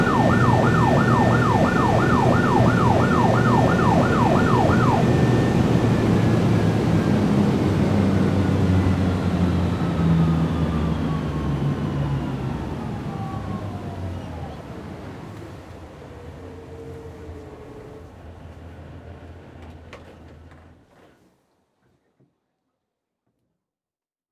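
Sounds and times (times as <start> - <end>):
police boat engine starting, driving and shutting off: 0.0 - 10.7
police boat siren: 0.0 - 15.1.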